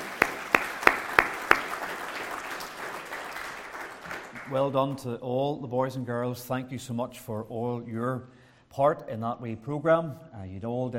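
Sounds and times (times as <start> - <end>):
audience applause: 0.0 - 4.7
speech: 4.5 - 10.9.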